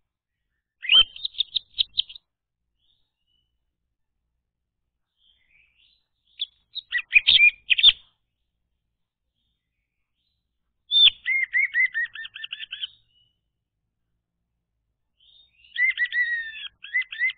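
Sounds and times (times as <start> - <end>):
orange-headed thrush whistled song: 0.3 - 3.5, 5.2 - 8.2, 9.6 - 13.4, 15.2 - 17.3.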